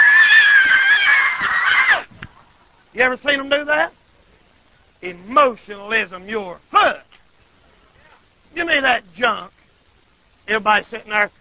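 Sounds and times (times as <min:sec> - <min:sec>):
man imitating someone screaming and hollering: 0:00.0 - 0:02.1
speech: 0:03.0 - 0:04.0, 0:05.0 - 0:07.0, 0:08.5 - 0:09.6, 0:10.5 - 0:11.3.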